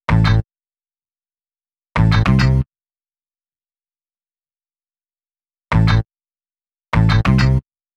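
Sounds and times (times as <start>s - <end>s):
hip-hop bass: 2.0s - 2.6s, 5.8s - 6.0s, 7.0s - 7.6s.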